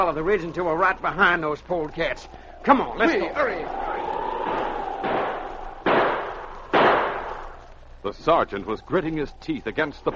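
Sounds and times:
speech: 0.0 - 3.9, 8.0 - 10.1
gunshots: 5.0 - 7.5.

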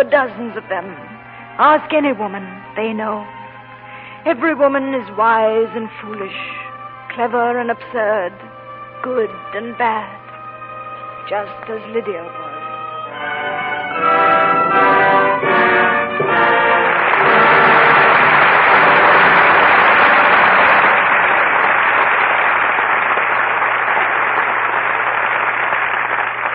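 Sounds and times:
speech: 0.0 - 3.4, 4.2 - 6.6, 7.2 - 10.2, 11.2 - 12.4, 13.1 - 15.0
music: 0.0 - 21.4
audience applause at end of play: 13.2 - 26.5.

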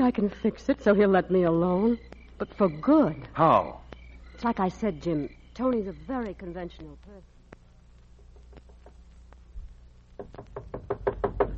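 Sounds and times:
speech: 0.0 - 3.8, 4.4 - 7.3
faint low hum: 0.0 - 11.5
knocking on a door: 10.2 - 11.5.

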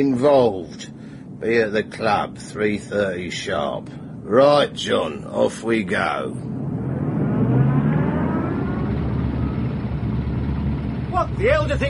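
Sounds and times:
speech: 0.0 - 6.5, 11.4 - 11.8
motorcycle engine revving: 6.5 - 11.8.

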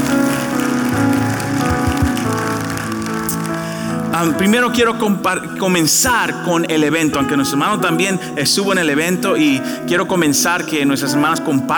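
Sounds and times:
audience applause: 0.0 - 4.6
speech: 4.2 - 11.7.

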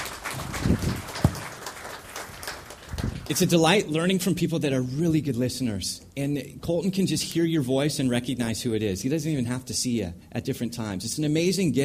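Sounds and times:
audience applause: 0.0 - 3.4
speech: 3.3 - 11.8.

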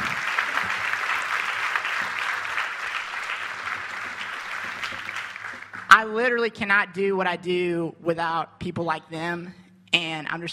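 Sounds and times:
crowd applauding youth leaders: 0.0 - 5.9
speech: 6.0 - 10.5.

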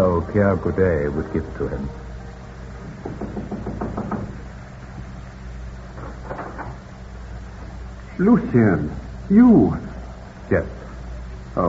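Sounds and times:
speech: 0.3 - 2.1, 3.0 - 4.1, 8.2 - 9.9, 10.5 - 10.8
knocking on a door: 2.8 - 4.5.

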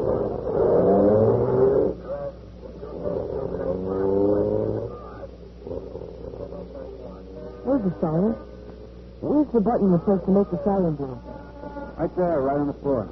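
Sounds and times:
police car engine revving and accelerating away: 0.0 - 13.1
speech: 7.8 - 8.5, 9.5 - 11.3, 12.0 - 13.1.

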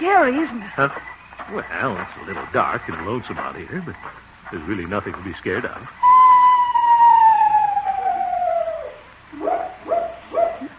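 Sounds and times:
speech: 0.0 - 6.1
owl hooting: 6.0 - 10.7.

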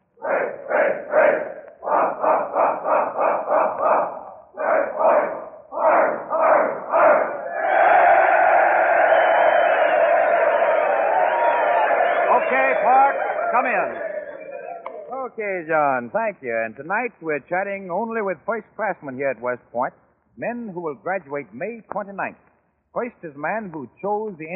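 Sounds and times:
military cadets' sustained roaring cheer: 0.2 - 15.2
large group of military cadets shouting a corps yell in unison: 3.8 - 15.1
speech: 15.4 - 24.5.

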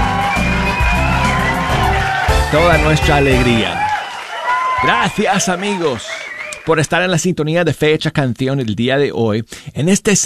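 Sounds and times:
crowd cheering and applause with whoops and shouts: 0.0 - 7.0
speech: 2.5 - 3.8, 4.8 - 10.2.

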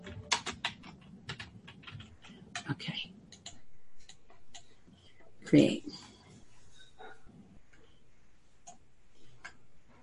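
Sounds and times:
typing on a computer keyboard: 0.0 - 4.9
speech: 2.7 - 3.1, 5.5 - 5.9.

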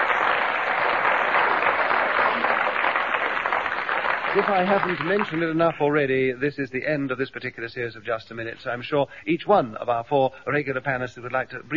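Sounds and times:
audience applause: 0.0 - 5.6
speech: 4.4 - 11.7.

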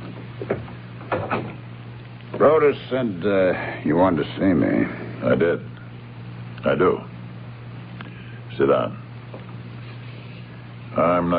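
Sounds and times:
door closing and latching: 0.0 - 1.6
speech: 0.5 - 0.7, 2.4 - 5.7, 6.6 - 7.1, 8.6 - 9.0, 11.0 - 11.3.

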